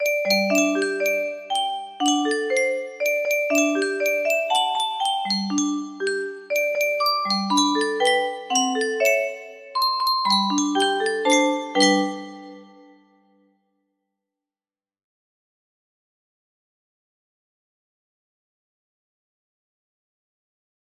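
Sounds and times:
melody: 0.0 - 13.0.

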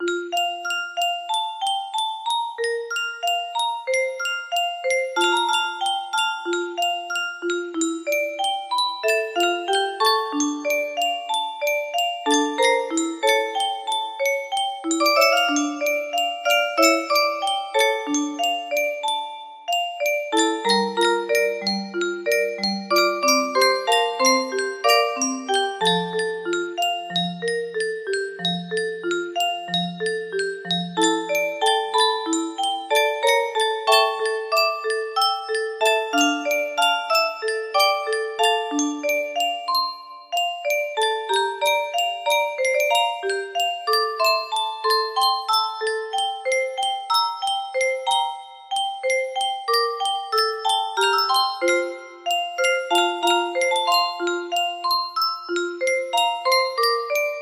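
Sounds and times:
music box melody in F: 0.0 - 57.3.

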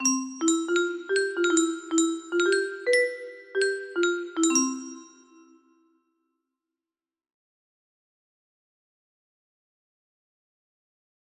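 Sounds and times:
music box melody: 0.0 - 5.8.

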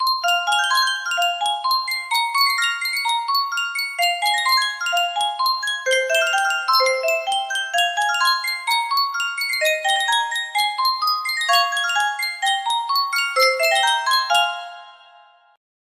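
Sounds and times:
Yunsheng custom tune music box: 0.0 - 15.6.

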